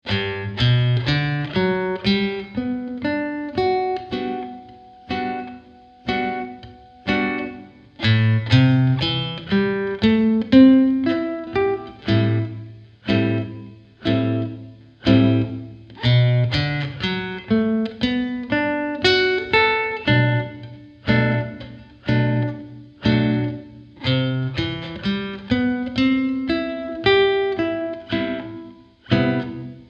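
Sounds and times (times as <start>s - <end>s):
guitar exercise in G major: 0.0s - 29.8s.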